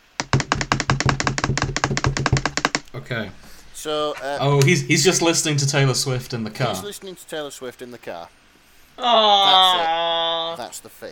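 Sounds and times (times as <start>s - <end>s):
drum roll tapped on a table: 0.0s - 2.8s
speech: 3.1s - 8.4s, 9.0s - 11.1s.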